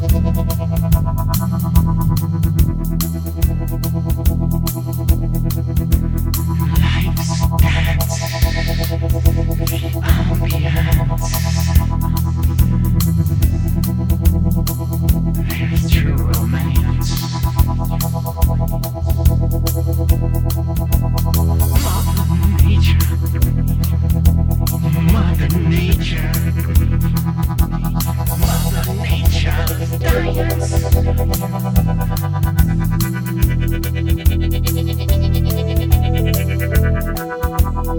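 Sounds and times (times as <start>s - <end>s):
ambience: 0.0s - 37.9s.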